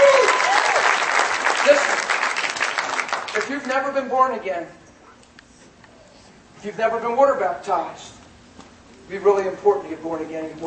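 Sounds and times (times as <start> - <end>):
whoops and cheers: 0.0 - 1.1
crowd applauding: 0.0 - 3.7
speech: 4.0 - 4.8, 6.6 - 8.2, 9.1 - 10.6.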